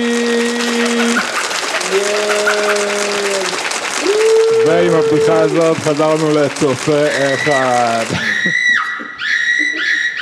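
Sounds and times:
audience applause: 0:00.0 - 0:08.8
drawn-out whoops or cheers: 0:00.0 - 0:10.1
laughter: 0:00.0 - 0:10.1
speech: 0:05.1 - 0:08.6.

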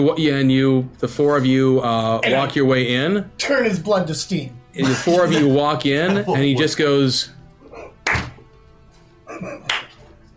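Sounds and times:
speech: 0:00.0 - 0:07.4
laughter: 0:04.8 - 0:07.2, 0:09.3 - 0:10.0
slow clapping: 0:08.0 - 0:08.4, 0:09.6 - 0:10.1.

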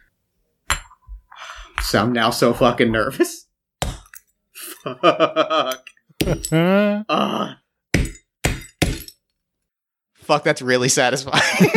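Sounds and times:
speech: 0:01.8 - 0:03.4, 0:04.9 - 0:05.7, 0:06.3 - 0:07.6, 0:10.3 - 0:11.7
hammer smashing an apple: 0:03.8 - 0:04.2, 0:07.9 - 0:09.2
laughter: 0:04.6 - 0:06.4, 0:11.4 - 0:11.7.

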